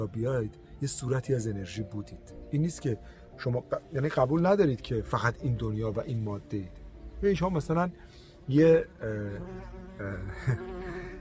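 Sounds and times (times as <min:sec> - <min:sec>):
speech: 0:00.0 - 0:10.9
bee buzzing around a cameraman: 0:09.1 - 0:11.1.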